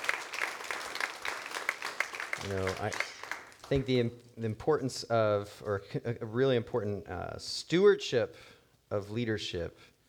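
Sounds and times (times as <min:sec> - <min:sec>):
audience applause: 0:00.0 - 0:03.8
speech: 0:02.4 - 0:03.1, 0:03.7 - 0:09.9.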